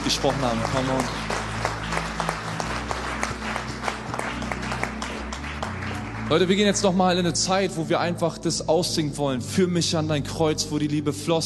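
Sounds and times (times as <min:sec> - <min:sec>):
applause: 0:00.0 - 0:07.9
speech: 0:00.1 - 0:01.3, 0:06.3 - 0:11.4.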